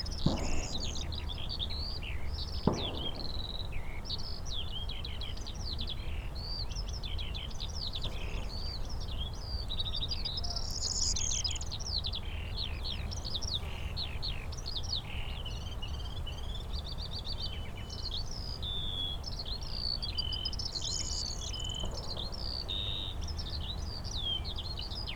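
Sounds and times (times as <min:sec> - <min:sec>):
Eurasian skylark singing: 0:00.0 - 0:25.1
sharp bangs: 0:00.2 - 0:04.2.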